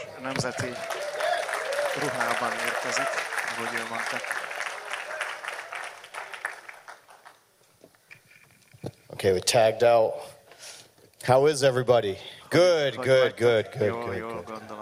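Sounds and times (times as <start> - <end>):
church service audience clapping to welcome a visiting preacher: 0.0 - 7.5, 12.5 - 14.8
speech: 0.2 - 1.0, 2.0 - 4.4, 9.2 - 10.4, 11.2 - 14.8.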